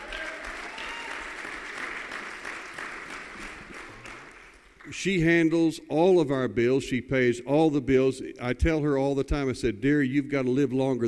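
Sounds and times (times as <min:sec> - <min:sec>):
audience applauding: 0:00.0 - 0:05.0
speech: 0:05.0 - 0:11.0.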